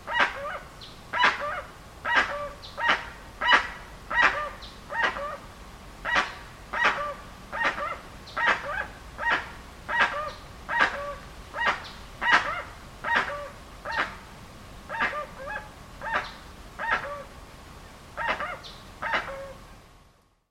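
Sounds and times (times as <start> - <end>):
Jacuaçu calling: 0.0 - 5.4, 6.0 - 14.2, 14.9 - 17.3, 18.2 - 19.6.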